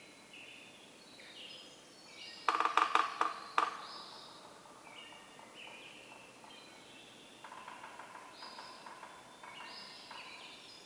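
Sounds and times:
Yellow-bellied Sapsucker drumming: 2.5 - 6.8, 7.4 - 10.5.

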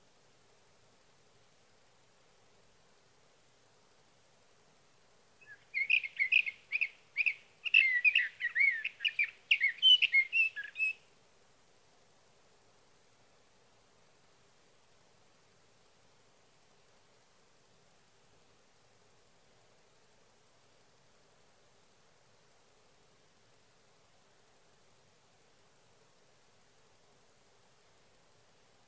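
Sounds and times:
Sage thrasher singing at night: 5.4 - 11.0.

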